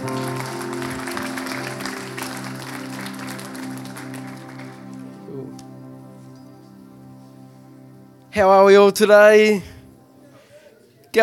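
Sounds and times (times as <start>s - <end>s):
crowd applause: 0.0s - 5.4s
sustained musical chord: 0.0s - 10.4s
speech: 8.4s - 9.7s.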